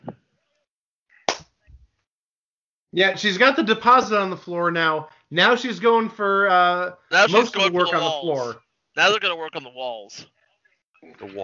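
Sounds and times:
single hand clap: 0:01.3 - 0:01.5
speech: 0:02.9 - 0:10.4, 0:11.0 - 0:11.4.

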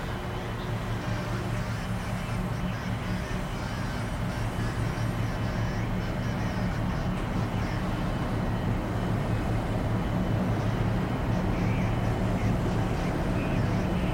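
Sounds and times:
shuttle cabin low rumble and engine drone: 0:00.0 - 0:14.1
faint murmuring voices: 0:00.1 - 0:14.1.

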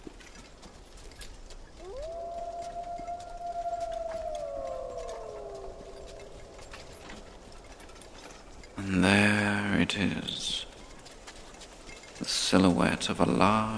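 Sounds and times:
distant wolf howls: 0:01.8 - 0:08.7
speech: 0:09.9 - 0:10.4, 0:12.5 - 0:13.7.

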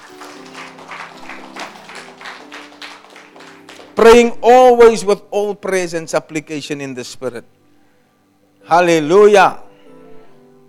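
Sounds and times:
congregation clapping during a church training session: 0:00.0 - 0:04.4
speech: 0:04.0 - 0:07.6, 0:08.7 - 0:09.6.

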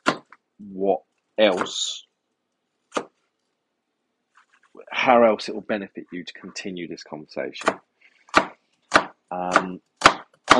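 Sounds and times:
speech: 0:00.6 - 0:02.0, 0:05.0 - 0:07.9, 0:09.3 - 0:09.9
knife chopping onions: 0:01.4 - 0:01.8, 0:07.6 - 0:10.5.

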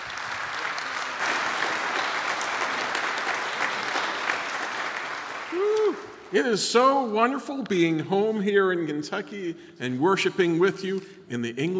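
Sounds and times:
congregation applause at a church worship service in Georgetown Kentucky: 0:00.0 - 0:06.9
speech: 0:06.3 - 0:11.7.

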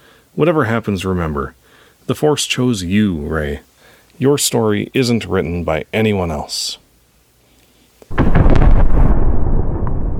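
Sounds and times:
speech: 0:00.4 - 0:06.8
massive explosion blast: 0:08.1 - 0:10.1.

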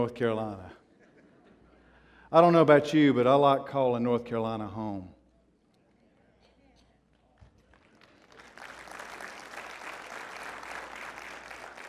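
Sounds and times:
speech: 0:00.0 - 0:00.8, 0:02.3 - 0:05.2
audience clapping: 0:07.1 - 0:11.8.

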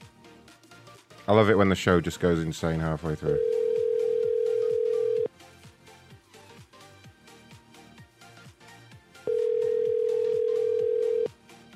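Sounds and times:
speech: 0:01.3 - 0:03.6
ringback tone of a returned phone call: 0:03.4 - 0:05.3, 0:09.3 - 0:11.3.

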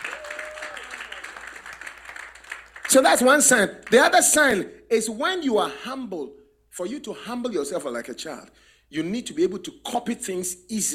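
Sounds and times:
audience clapping: 0:00.0 - 0:04.5
speech: 0:02.9 - 0:10.9.

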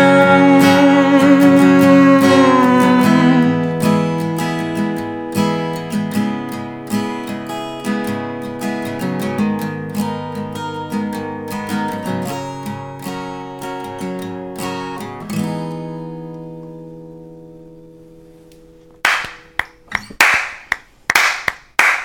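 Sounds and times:
music: 0:00.0 - 0:20.0
slow hand clapping: 0:19.0 - 0:22.0.

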